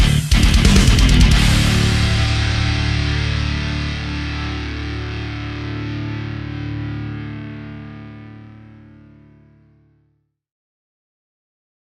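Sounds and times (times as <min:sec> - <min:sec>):
metal version battle theme music: 0:00.0 - 0:08.2.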